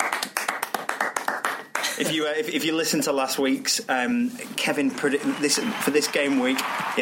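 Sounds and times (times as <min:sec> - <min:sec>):
round of applause: 0:00.0 - 0:02.0, 0:05.0 - 0:06.9
speech: 0:02.0 - 0:06.9.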